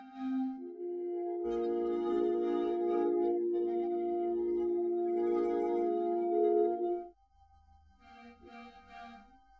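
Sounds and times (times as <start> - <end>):
horn: 0.3 - 7.1.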